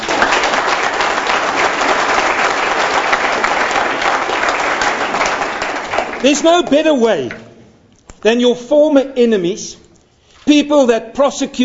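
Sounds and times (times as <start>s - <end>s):
applause: 0.0s - 7.0s
speech: 6.2s - 7.4s, 8.2s - 9.8s, 10.4s - 11.6s.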